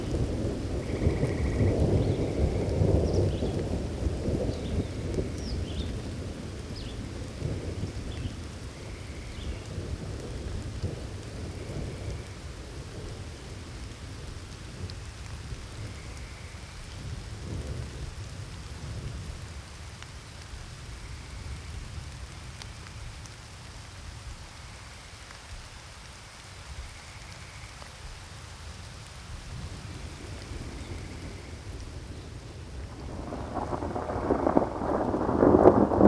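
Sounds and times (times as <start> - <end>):
thunderstorm: 0.0 - 19.8, 29.4 - 36.0.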